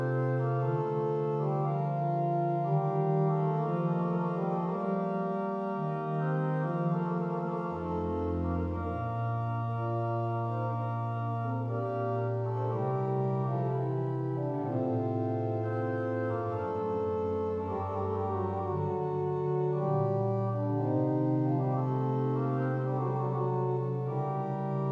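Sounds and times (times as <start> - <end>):
tierce en taille on organ with Claribel, Bourdon and Praestant stops: 0.0 - 24.9.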